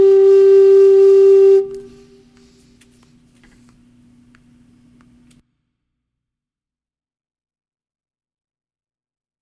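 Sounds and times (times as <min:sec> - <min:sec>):
bugle call: 0:00.0 - 0:02.0.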